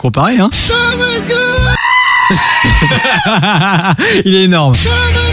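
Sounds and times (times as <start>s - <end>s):
speech: 0.0s - 1.6s, 2.3s - 5.2s
goat bleating: 1.7s - 3.2s
laughter: 2.2s - 4.6s.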